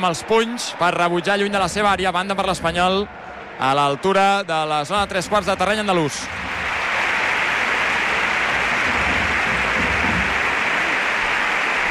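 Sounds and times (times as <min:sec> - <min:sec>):
speech: 0:00.0 - 0:06.5
Espanyol supporters applauding in the Sánchez Pizjuán stadium: 0:00.0 - 0:11.8.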